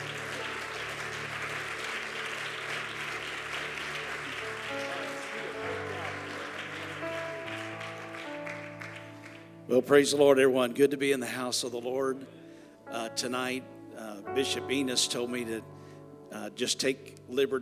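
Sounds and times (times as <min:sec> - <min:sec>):
church congregation applause welcoming a pastor onto the stage: 0:00.0 - 0:09.7
speech: 0:09.7 - 0:17.6.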